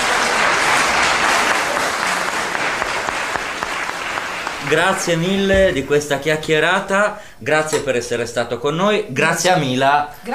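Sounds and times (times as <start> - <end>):
audience applause: 0.0 - 5.5
speech: 4.7 - 10.3.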